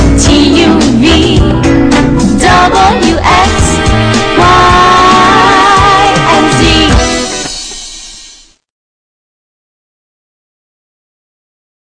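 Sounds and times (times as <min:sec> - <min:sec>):
funky music: 0:00.0 - 0:08.6.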